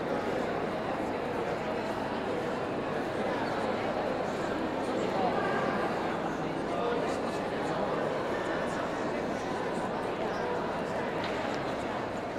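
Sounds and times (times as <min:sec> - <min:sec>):
people ambience in a large hall: 0:00.0 - 0:12.3.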